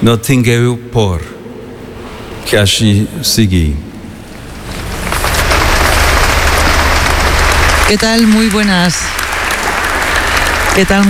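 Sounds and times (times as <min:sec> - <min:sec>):
speech: 0:00.0 - 0:01.3, 0:02.5 - 0:03.9, 0:07.9 - 0:09.2, 0:10.8 - 0:11.0
applause after a speech by Pope Leo XIV: 0:04.9 - 0:11.0.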